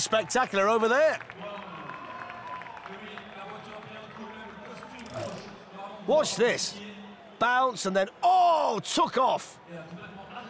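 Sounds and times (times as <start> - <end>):
speech: 0.0 - 1.6, 2.9 - 3.8, 6.1 - 10.4
large crowd cheering and clapping: 0.0 - 5.6.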